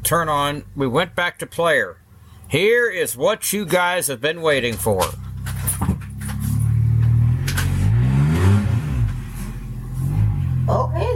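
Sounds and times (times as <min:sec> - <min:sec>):
speech: 0:00.1 - 0:05.2
car engine revving outside by a front lawn: 0:04.8 - 0:11.1.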